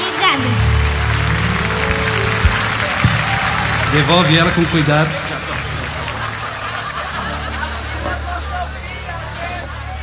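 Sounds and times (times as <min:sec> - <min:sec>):
audience applause: 0:00.0 - 0:10.0
low thumps: 0:01.6 - 0:04.8
laughter: 0:01.8 - 0:10.0
speech: 0:03.9 - 0:05.3.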